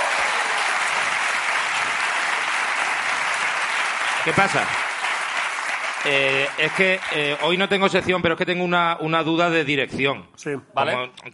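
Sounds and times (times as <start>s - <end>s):
audience applause: 0.0s - 8.0s
speech: 4.2s - 4.9s, 6.0s - 11.3s.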